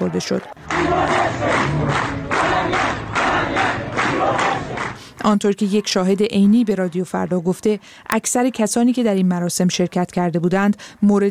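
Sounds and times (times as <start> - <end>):
speech: 0.0 - 2.8, 5.2 - 11.2
large crowd clamoring at a cemetery funeral: 0.7 - 4.9.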